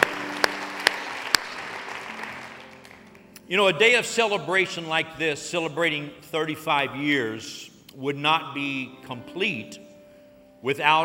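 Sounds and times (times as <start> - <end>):
audience applauding: 0.0 - 3.4
speech: 3.5 - 9.8, 10.6 - 11.0.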